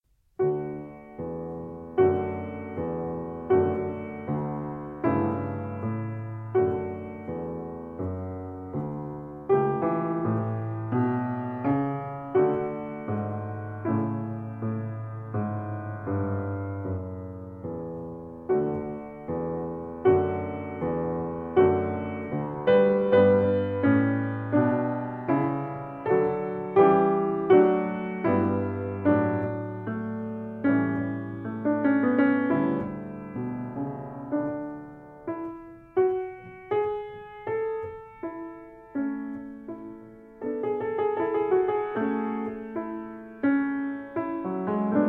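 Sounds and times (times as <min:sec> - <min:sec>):
piano sonata: 0:00.0 - 0:45.0.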